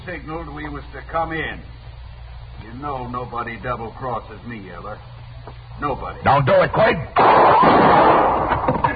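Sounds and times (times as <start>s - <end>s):
speech: 0.0s - 1.8s, 2.6s - 8.8s
gunshot in a Western drama: 7.2s - 8.8s.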